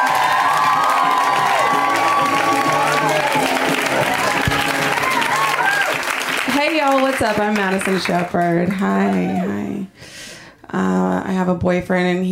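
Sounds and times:
audience cheering and clapping: 0.0 - 9.8
speech: 6.9 - 12.3.

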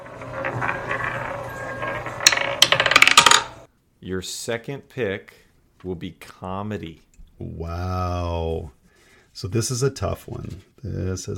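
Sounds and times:
spinning roulette wheel whirring and clicking: 0.0 - 3.7
speech: 4.1 - 8.8, 9.4 - 11.3.

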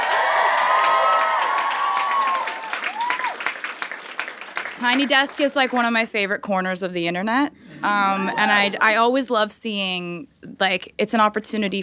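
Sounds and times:
audience applause and cheering: 0.0 - 5.2
speech: 4.8 - 11.8.

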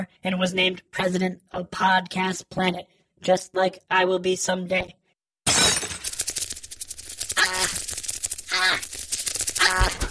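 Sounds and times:
speech: 0.0 - 5.0
window shattering: 5.5 - 6.6
carrier pigeon squawking: 8.5 - 8.9, 9.5 - 10.0.

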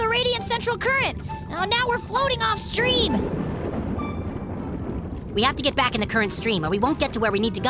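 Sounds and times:
speech: 0.5 - 3.5, 5.4 - 7.6
deep rolling thunder of a thunderstorm: 2.2 - 7.6.

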